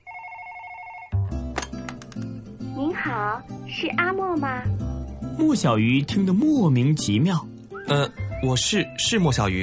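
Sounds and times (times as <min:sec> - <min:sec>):
telephone ringing: 0:00.0 - 0:01.4
speech: 0:03.0 - 0:09.6.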